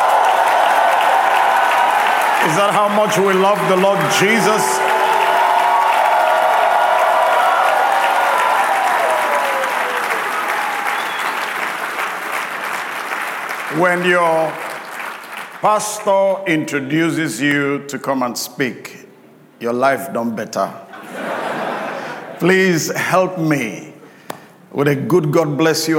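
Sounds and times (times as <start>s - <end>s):
audience hand clapping: 0.0s - 16.3s
speech: 2.5s - 5.0s, 13.8s - 14.6s, 15.6s - 20.8s, 22.4s - 23.9s, 24.8s - 25.9s
laughter: 20.9s - 22.5s.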